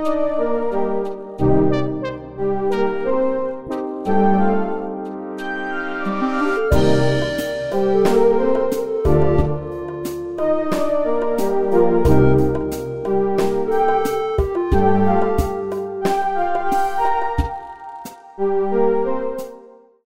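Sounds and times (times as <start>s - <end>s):
orchestra: 0.1s - 19.5s.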